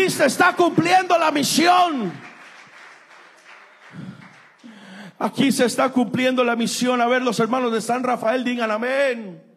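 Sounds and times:
crowd clapping: 0:00.0 - 0:05.1
speech: 0:00.1 - 0:02.3, 0:05.2 - 0:09.5.

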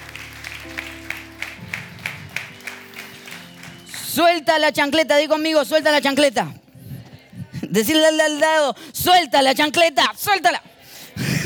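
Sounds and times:
audience applause: 0:00.0 - 0:04.2
speech: 0:04.2 - 0:06.6, 0:07.7 - 0:11.4.

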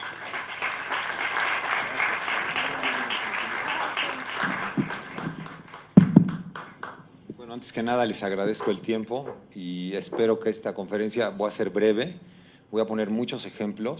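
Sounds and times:
audience applause: 0:00.0 - 0:07.0
speech: 0:07.7 - 0:13.9.

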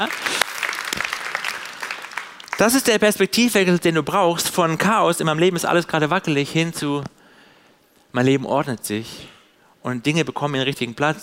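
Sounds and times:
speech: 0:00.0 - 0:00.2, 0:02.6 - 0:07.2, 0:08.1 - 0:11.2
audience applause: 0:00.0 - 0:02.9.

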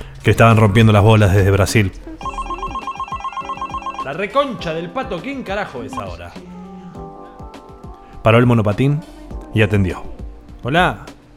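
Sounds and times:
speech: 0:00.2 - 0:02.1, 0:04.1 - 0:06.5, 0:08.2 - 0:11.1
phone ringing: 0:02.2 - 0:04.5, 0:05.9 - 0:06.2.

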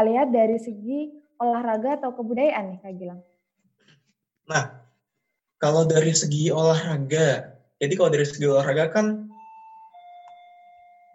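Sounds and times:
speech: 0:00.0 - 0:03.3, 0:04.5 - 0:04.9, 0:05.6 - 0:09.3
doorbell ringing: 0:09.3 - 0:11.1.

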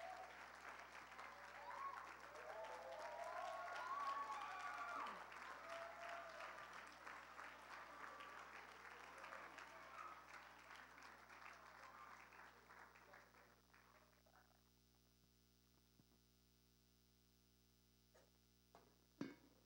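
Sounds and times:
faint cheers: 0:00.0 - 0:12.5
audience hand clapping: 0:00.0 - 0:14.5.

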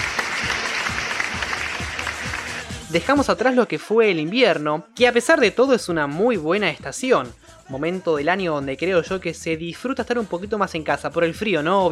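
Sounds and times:
crowd clapping loudly: 0:00.0 - 0:03.2
speech: 0:02.9 - 0:11.9.

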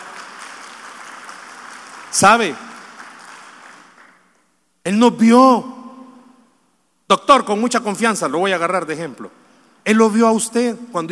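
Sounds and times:
audience applause: 0:00.0 - 0:04.2
speech: 0:02.1 - 0:02.6, 0:05.0 - 0:05.7, 0:07.1 - 0:11.0.

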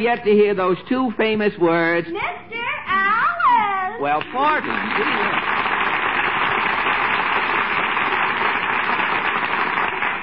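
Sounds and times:
speech: 0:00.0 - 0:03.2, 0:04.0 - 0:05.4
studio audience applause: 0:04.4 - 0:10.2.

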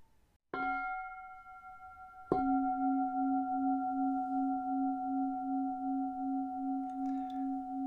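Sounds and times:
meditation bell ringing: 0:00.6 - 0:07.8.

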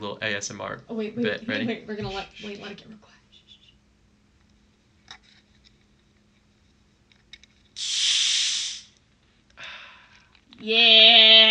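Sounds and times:
speech: 0:00.0 - 0:03.2, 0:10.6 - 0:11.4
orange cream soda bottle being opened with a fizzing hiss: 0:07.8 - 0:09.0.

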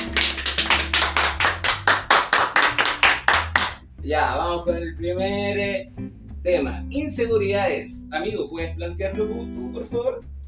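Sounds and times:
audience rhythmic clapping in unison: 0:00.0 - 0:03.9
speech: 0:04.1 - 0:10.3.

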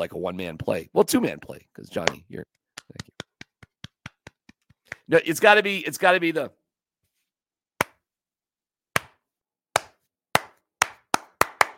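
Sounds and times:
speech: 0:00.0 - 0:03.0, 0:05.1 - 0:06.6
one person doing a slow clap: 0:02.8 - 0:05.1, 0:09.8 - 0:11.7.

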